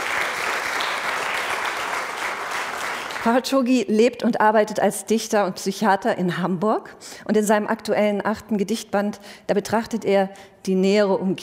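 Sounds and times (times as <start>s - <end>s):
audience applause: 0.0s - 3.3s
speech: 3.2s - 11.4s.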